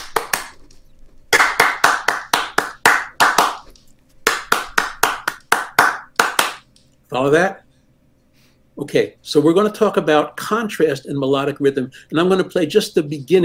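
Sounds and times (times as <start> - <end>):
hands clapping out a melody's rhythm: 0.0 - 6.8
speech: 7.1 - 7.6, 8.8 - 13.4.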